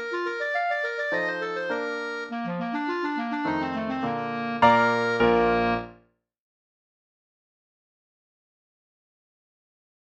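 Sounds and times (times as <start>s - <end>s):
clarinet sonata in C major: 0.0s - 6.0s.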